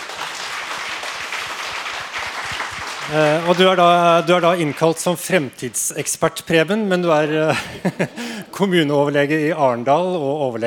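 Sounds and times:
audience applause: 0:00.0 - 0:05.2
speech: 0:03.1 - 0:10.6
laughter: 0:07.2 - 0:09.2.

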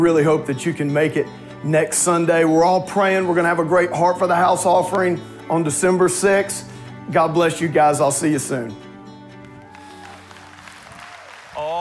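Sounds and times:
speech: 0:00.0 - 0:08.9
audience applause: 0:09.4 - 0:11.7.

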